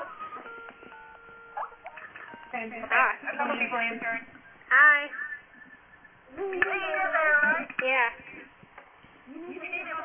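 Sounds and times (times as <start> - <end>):
electronic phone-call beeps: 0.0 - 2.8
speech: 2.6 - 5.3, 6.3 - 8.5.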